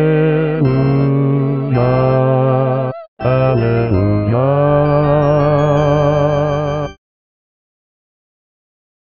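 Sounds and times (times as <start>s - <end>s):
bass voice singing: 0.0s - 7.0s.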